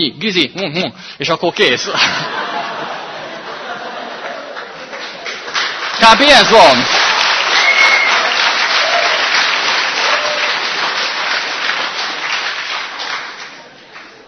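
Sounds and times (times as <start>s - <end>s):
speech: 0.0s - 2.4s, 6.0s - 7.0s
laughter: 1.8s - 5.5s
audience clapping: 3.2s - 14.2s.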